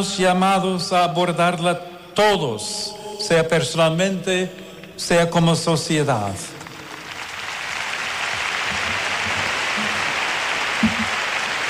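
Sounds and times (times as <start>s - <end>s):
speech: 0.0s - 6.6s
audience ovation and applause: 6.8s - 11.6s.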